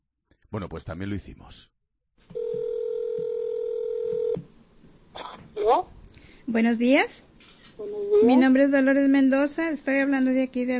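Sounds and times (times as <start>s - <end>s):
speech: 0.5s - 2.4s, 5.2s - 10.7s
telephone call dialing tone: 2.3s - 4.4s.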